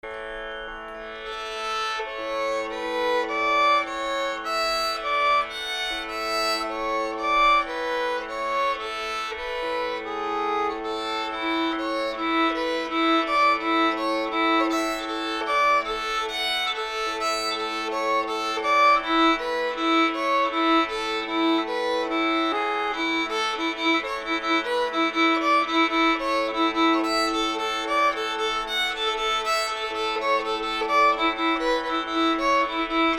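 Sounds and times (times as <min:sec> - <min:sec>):
fiddle playing: 0:00.0 - 0:33.1.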